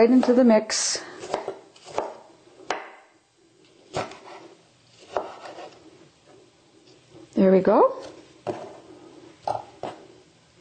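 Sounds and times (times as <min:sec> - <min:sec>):
knife coarsely chopping tomatoes: 0:00.0 - 0:00.5, 0:01.2 - 0:03.1, 0:03.9 - 0:05.8, 0:08.0 - 0:08.8
speech: 0:00.0 - 0:01.1, 0:07.4 - 0:08.2.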